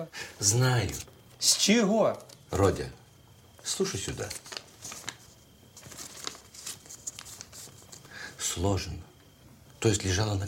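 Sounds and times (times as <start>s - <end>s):
speech: 0.0s - 3.0s, 3.6s - 4.6s, 8.6s - 9.1s, 9.8s - 10.4s
soft hiss: 0.0s - 10.4s
forged banknote paper crinkling: 3.7s - 8.1s.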